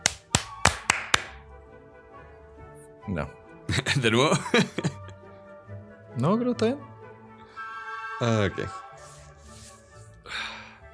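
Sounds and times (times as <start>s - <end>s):
two people clapping hands: 0.0s - 1.4s
speech: 3.1s - 5.0s, 6.2s - 6.9s, 8.2s - 8.8s
laughter: 3.7s - 5.2s.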